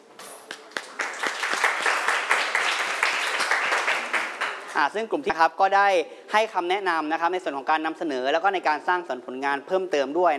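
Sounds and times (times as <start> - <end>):
audience applause: 0.6 - 4.7
speech: 4.8 - 10.3.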